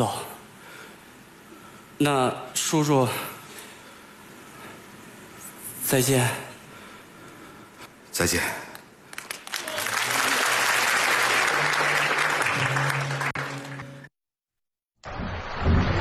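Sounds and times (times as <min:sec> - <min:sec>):
speech: 0:00.0 - 0:00.2, 0:02.0 - 0:03.3, 0:05.9 - 0:06.5, 0:08.2 - 0:08.6
audience applause: 0:09.1 - 0:14.1.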